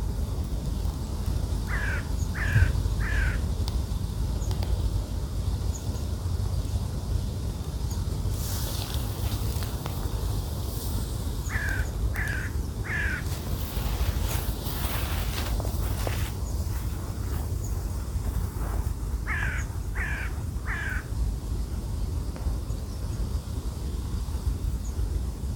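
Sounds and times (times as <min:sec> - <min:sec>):
gusty wind: 0:00.0 - 0:25.5
bird cawing harshly: 0:01.7 - 0:03.4, 0:11.4 - 0:13.9, 0:19.3 - 0:21.1.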